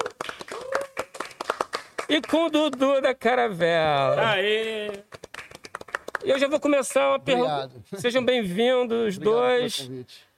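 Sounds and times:
audience applause: 0:00.0 - 0:02.8, 0:04.4 - 0:06.4
speech: 0:02.1 - 0:05.1, 0:06.2 - 0:10.3.

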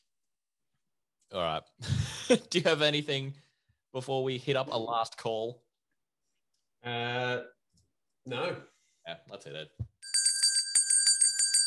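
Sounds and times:
speech: 0:01.3 - 0:05.6, 0:06.8 - 0:07.6, 0:08.2 - 0:09.9
bell ringing: 0:10.0 - 0:11.6.

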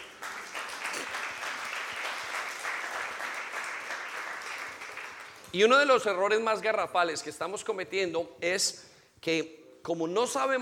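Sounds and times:
audience applause: 0:00.0 - 0:05.5
speech: 0:05.5 - 0:10.6.

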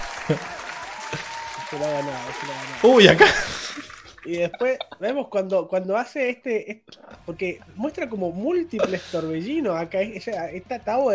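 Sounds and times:
applause: 0:00.0 - 0:04.1
laughter: 0:00.0 - 0:05.4
speech: 0:00.3 - 0:11.1.

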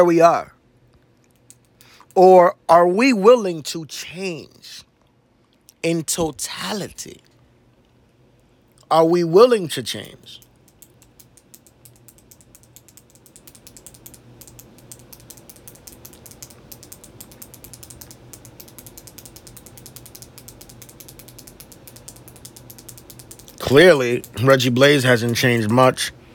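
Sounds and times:
speech: 0:00.0 - 0:00.5, 0:02.2 - 0:04.9, 0:05.8 - 0:07.3, 0:08.9 - 0:10.4, 0:23.7 - 0:26.2
pen clicking: 0:10.7 - 0:24.4.

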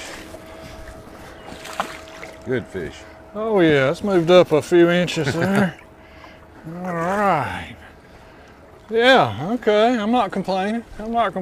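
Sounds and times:
low rumble: 0:00.0 - 0:09.9
water splashing against a fishing boat: 0:00.0 - 0:11.4
speech: 0:01.8 - 0:05.8, 0:06.6 - 0:07.8, 0:08.9 - 0:11.4
laughter: 0:05.0 - 0:05.9.

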